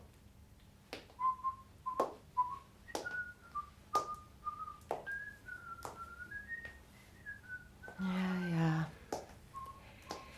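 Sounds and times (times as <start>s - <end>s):
man whistling a simple tune: 1.2s - 8.0s, 9.5s - 10.3s.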